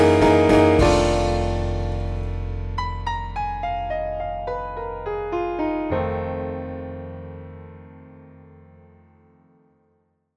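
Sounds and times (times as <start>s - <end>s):
blues music: 0.0s - 6.7s.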